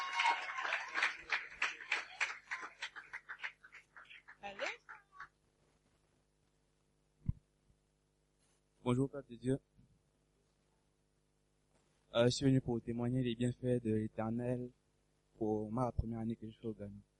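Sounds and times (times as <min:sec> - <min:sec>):
church congregation applauding and cheering at a morning worship service: 0:00.0 - 0:05.3
speech: 0:08.9 - 0:09.7, 0:12.2 - 0:14.8, 0:15.4 - 0:17.1.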